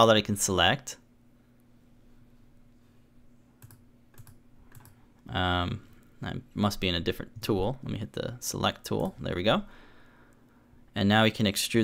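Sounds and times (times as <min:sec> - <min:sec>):
speech: 0:00.0 - 0:01.0, 0:05.3 - 0:09.8, 0:11.0 - 0:11.8
low steady hum: 0:00.0 - 0:11.8
computer keyboard typing a command into modelling software: 0:03.6 - 0:05.0.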